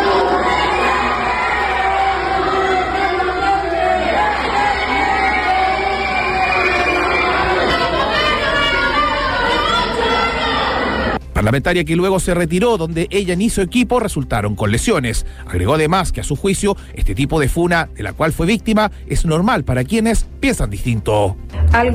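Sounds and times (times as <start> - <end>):
crowd shouting insults: 0.0 - 11.2
speech: 11.5 - 21.9.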